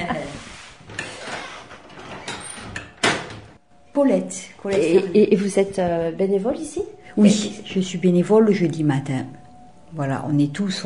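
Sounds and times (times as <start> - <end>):
door being closed: 0.8 - 3.6
speech: 4.0 - 10.8.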